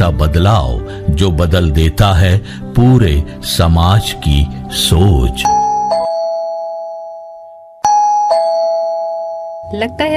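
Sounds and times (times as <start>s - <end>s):
speech: 0.1s - 5.6s, 9.7s - 10.1s
doorbell chiming: 5.4s - 10.1s.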